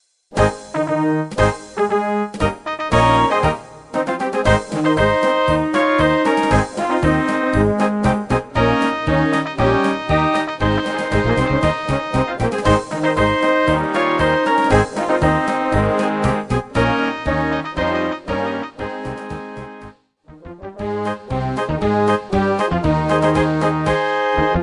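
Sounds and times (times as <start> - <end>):
march music: 0.3 - 24.6.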